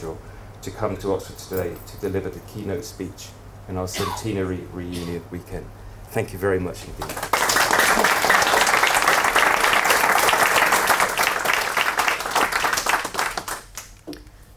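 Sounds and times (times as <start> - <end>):
speech: 0.0 - 7.3
crowd applause welcoming a keynote speaker at an Oxford centenary reunion weekend: 7.0 - 13.9.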